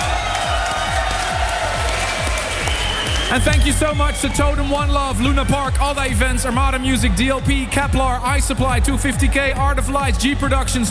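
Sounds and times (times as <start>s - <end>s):
audience applause: 0.0s - 4.3s
audience cheering: 0.0s - 10.6s
speech: 3.3s - 10.8s.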